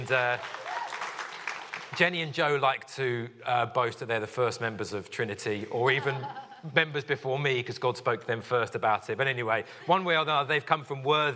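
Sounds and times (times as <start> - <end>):
speech: 0.0 - 0.6, 1.9 - 11.3
audience applause: 0.0 - 2.1
laughter: 5.7 - 6.8.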